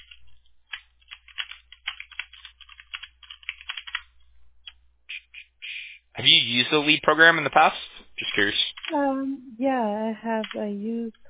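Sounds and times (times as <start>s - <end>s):
typing on a computer keyboard while copying and pasting: 0.0s - 5.5s, 7.5s - 9.0s, 10.3s - 11.2s
speech: 6.2s - 11.2s.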